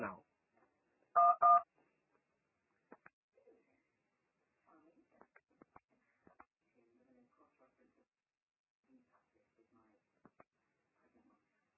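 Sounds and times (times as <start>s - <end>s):
telephone keypad dialing tones: 1.2s - 1.6s.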